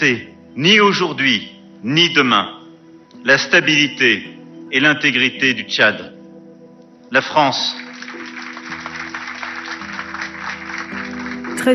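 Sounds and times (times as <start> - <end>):
speech: 0.0 - 2.6, 3.2 - 6.2, 7.1 - 7.8
large crowd applause after a speech: 7.7 - 11.7.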